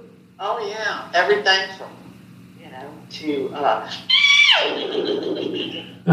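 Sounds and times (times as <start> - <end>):
speech: 0.4 - 2.0, 3.1 - 6.1
person imitating a horse neigh: 3.9 - 4.8
laughter: 3.9 - 6.1.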